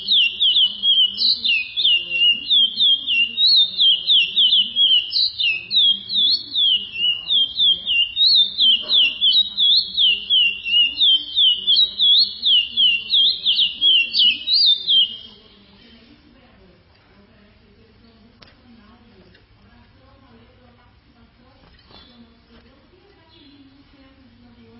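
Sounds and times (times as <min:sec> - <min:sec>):
chestnut-bellied seed finch song of rapid high whistles: 0:00.0 - 0:15.5.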